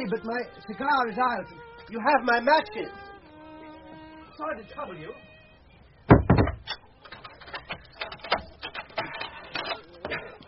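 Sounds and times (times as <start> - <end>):
speech: 0.0 - 3.1, 4.4 - 5.3
door being locked and barred: 6.1 - 10.4.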